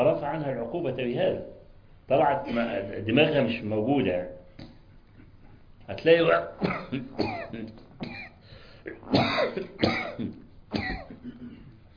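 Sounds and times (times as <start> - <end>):
speech: 0.0 - 4.4, 5.9 - 7.8, 9.1 - 11.0
speaker coughing harshly: 6.4 - 11.8
throat clearing: 6.4 - 11.9.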